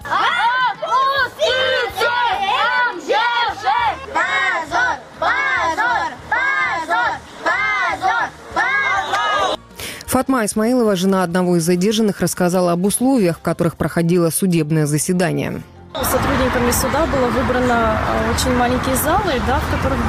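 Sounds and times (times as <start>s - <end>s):
children shouting at police outside court: 0.0s - 9.6s
speech: 10.2s - 20.0s.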